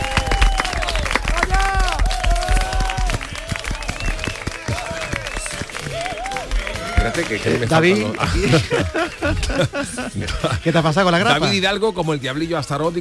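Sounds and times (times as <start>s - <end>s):
audience applause: 0.0s - 10.0s
laughter: 4.7s - 11.6s
speech: 7.2s - 13.0s.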